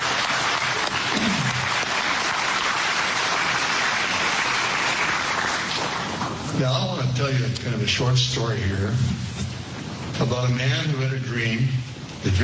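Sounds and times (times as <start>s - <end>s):
audience applause: 0.0s - 6.5s
speech: 6.6s - 9.4s, 10.2s - 12.4s.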